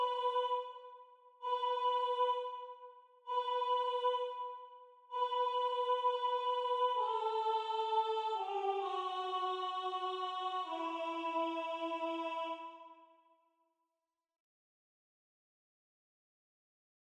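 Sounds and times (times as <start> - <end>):
mezzo-soprano singing: 0.0 - 13.0.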